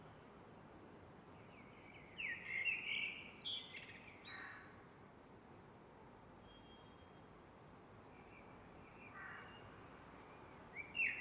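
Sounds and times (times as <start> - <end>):
Eurasian blackbird singing: 1.6 - 4.4, 10.8 - 11.1.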